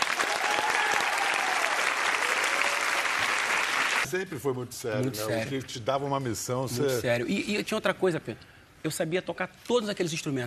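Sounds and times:
audience applause: 0:00.0 - 0:04.1
speech: 0:04.1 - 0:10.4.

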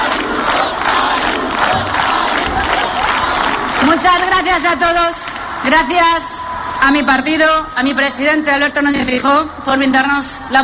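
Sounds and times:
crowd chanting a politician's name: 0:00.0 - 0:04.0
speech: 0:04.0 - 0:10.6.

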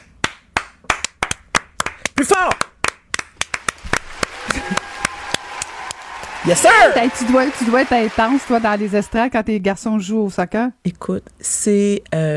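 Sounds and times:
applause: 0:00.2 - 0:09.3
speech: 0:02.2 - 0:02.7, 0:06.4 - 0:12.3.

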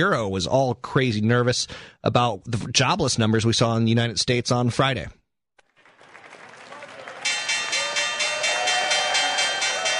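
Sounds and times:
speech: 0:00.0 - 0:05.2
stock exchange bell ringing: 0:07.2 - 0:09.9.

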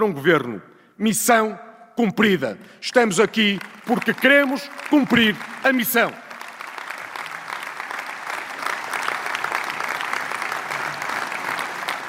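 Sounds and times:
speech: 0:00.0 - 0:06.2
standing ovation applause: 0:03.0 - 0:12.0.

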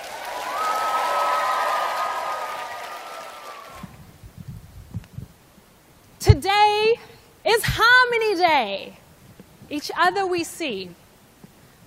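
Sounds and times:
round of applause: 0:00.0 - 0:04.0
speech: 0:07.7 - 0:09.0, 0:09.7 - 0:11.0.

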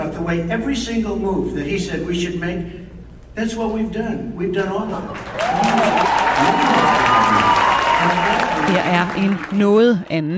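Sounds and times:
speech: 0:00.0 - 0:02.8, 0:03.4 - 0:10.3
standing ovation from audience: 0:05.0 - 0:10.1.

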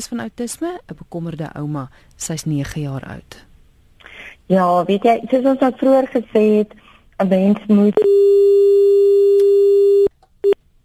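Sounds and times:
speech: 0:00.0 - 0:03.5, 0:04.5 - 0:08.8
telephone busy tone after a dropped call: 0:08.0 - 0:10.6.

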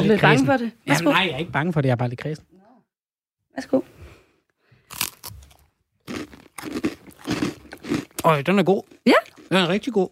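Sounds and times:
speech: 0:00.0 - 0:02.5, 0:03.6 - 0:04.0, 0:08.2 - 0:10.0
crispbread with coarse wild garlic pesto crunching when bitten: 0:04.9 - 0:09.6.

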